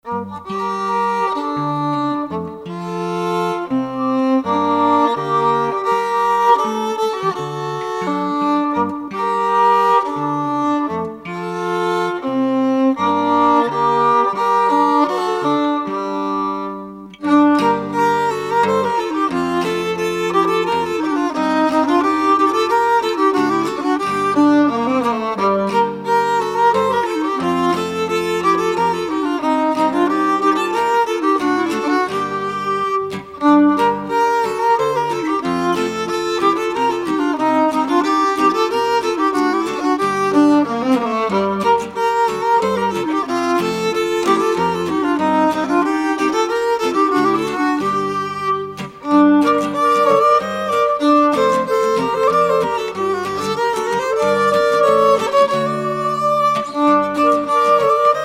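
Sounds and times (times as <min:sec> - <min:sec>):
Swedish trio playing a polska: 0:00.0 - 0:58.2.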